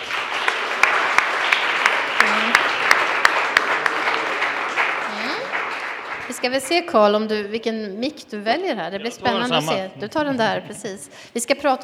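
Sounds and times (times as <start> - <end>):
audience applause: 0.0 - 7.0
speech: 6.4 - 11.8.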